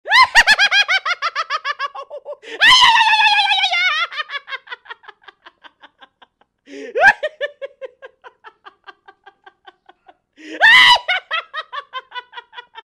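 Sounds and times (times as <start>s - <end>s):
bizarre laughter: 0.1s - 12.8s.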